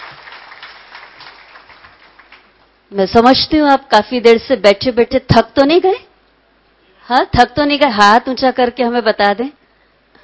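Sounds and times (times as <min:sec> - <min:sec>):
audience applause thanking a guest speaker after a meditation talk: 0:00.0 - 0:02.6
speech: 0:02.9 - 0:06.0, 0:07.1 - 0:09.6.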